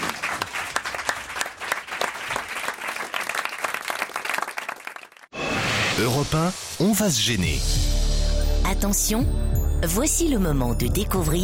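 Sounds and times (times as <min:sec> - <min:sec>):
audience applause: 0:00.0 - 0:05.3
speech: 0:06.0 - 0:08.0, 0:08.6 - 0:11.4.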